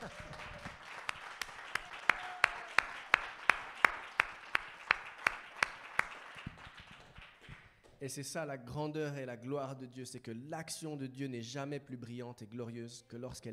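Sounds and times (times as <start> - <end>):
rhythmic clapping from a church congregation: 0.0 - 8.0
speech: 8.0 - 13.5.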